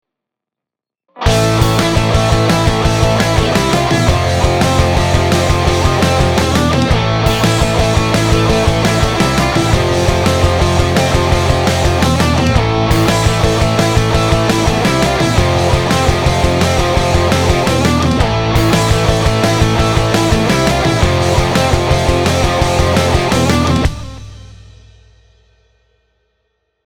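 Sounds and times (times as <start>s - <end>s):
pop punk music: 1.2s - 24.9s.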